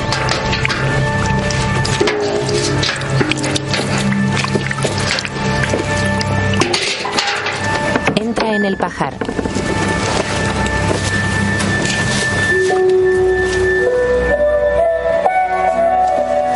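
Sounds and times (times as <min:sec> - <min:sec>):
water sloshing in a basin: 0:00.0 - 0:13.8
faint sustained tones: 0:00.1 - 0:16.5
speech: 0:08.9 - 0:09.4.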